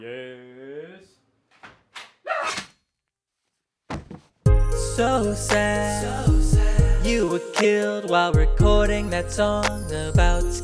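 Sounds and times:
knocking on a door: 3.9s - 4.3s
speech: 5.0s - 10.6s.

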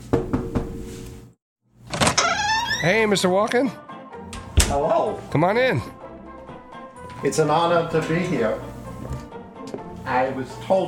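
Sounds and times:
door being opened: 1.9s - 3.0s, 4.3s - 4.8s
speech: 2.8s - 3.9s, 4.7s - 6.0s, 7.2s - 8.7s, 10.1s - 10.8s.

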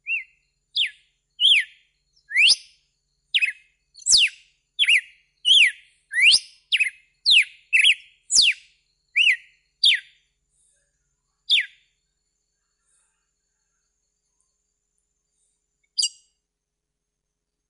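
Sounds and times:
red-cowled cardinal whistled song: 0.0s - 10.3s, 11.5s - 11.9s.

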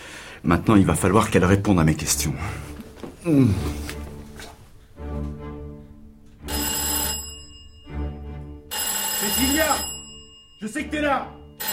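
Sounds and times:
speech: 0.4s - 3.9s, 10.6s - 11.4s
electric doorbell ringing: 6.5s - 11.7s.

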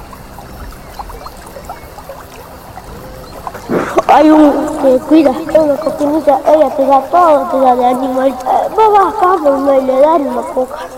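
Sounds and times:
water flowing from a spring: 0.0s - 10.9s
speech: 4.1s - 10.9s.

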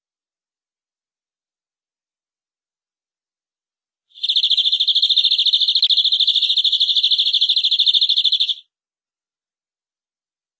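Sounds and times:
canary trilling: 4.2s - 8.6s.

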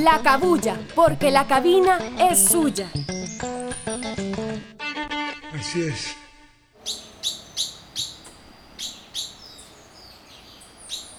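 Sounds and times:
speech: 0.0s - 4.0s, 5.6s - 6.2s
faint hum: 6.8s - 11.1s
tropical forest birds calling at dawn: 6.8s - 11.1s.

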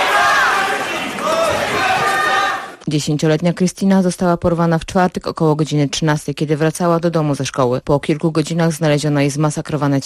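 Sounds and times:
large crowd outside prosecutor's office: 0.0s - 2.8s
speech: 2.9s - 10.0s.

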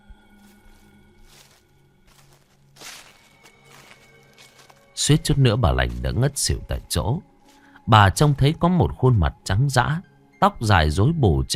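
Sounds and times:
rustling footsteps from behind: 0.4s - 7.7s
speech: 5.0s - 7.3s, 7.9s - 11.5s.

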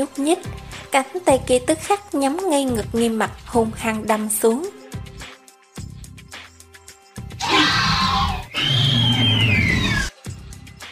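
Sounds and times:
speech: 0.0s - 4.8s
shrill agonized scream: 7.4s - 10.1s.

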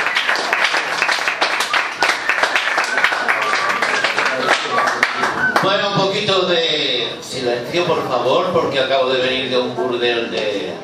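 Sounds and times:
crowd clapping: 0.0s - 5.8s
speech: 5.7s - 10.8s.

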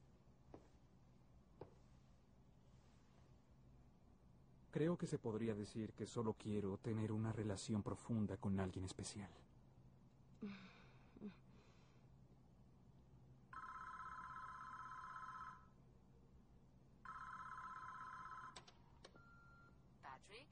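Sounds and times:
speech: 4.7s - 9.5s, 10.4s - 11.4s
telephone ringing with electronic trill: 13.5s - 15.8s, 17.0s - 19.8s.

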